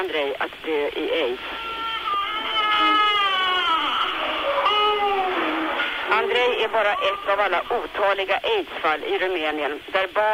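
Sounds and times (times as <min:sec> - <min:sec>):
speech: 0:00.0 - 0:01.7, 0:06.1 - 0:10.3
infant screaming and crying: 0:01.4 - 0:06.0.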